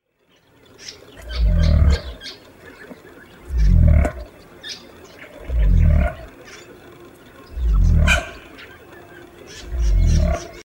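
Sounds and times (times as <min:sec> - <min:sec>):
cassowaries: 0:00.2 - 0:10.6.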